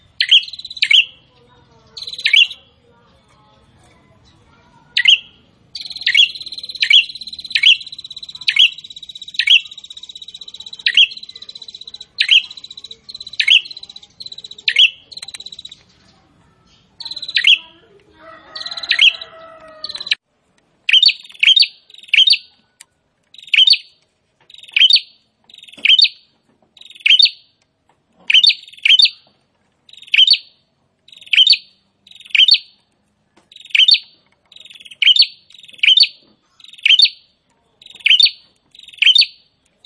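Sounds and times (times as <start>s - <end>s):
prinia song of buzzy trills: 0.0s - 2.7s, 5.0s - 16.2s, 16.8s - 17.7s, 18.6s - 20.2s, 20.9s - 22.5s, 23.3s - 26.2s, 26.8s - 27.6s, 28.3s - 29.2s, 29.9s - 32.8s, 33.5s - 39.8s.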